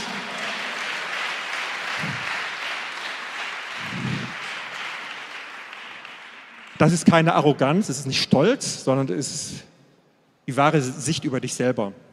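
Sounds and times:
audience clapping: 0.0 - 7.4
speech: 6.8 - 9.7, 10.5 - 12.1.

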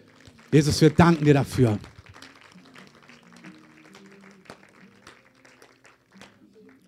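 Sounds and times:
crowd clapping: 0.0 - 6.8
speech: 0.5 - 1.9.

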